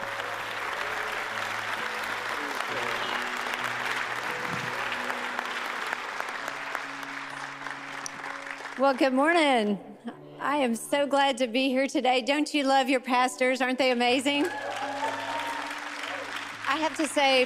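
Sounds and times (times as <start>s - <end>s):
church audience clapping to welcome a guest speaker: 0.0s - 9.4s, 14.4s - 17.4s
speech: 8.8s - 14.7s, 16.8s - 17.4s.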